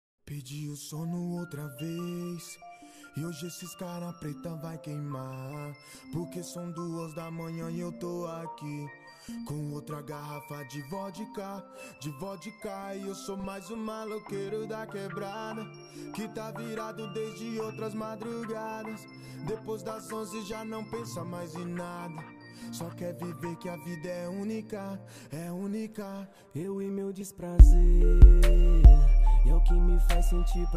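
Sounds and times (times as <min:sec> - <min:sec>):
deep hip hop bass: 0:27.6 - 0:30.7.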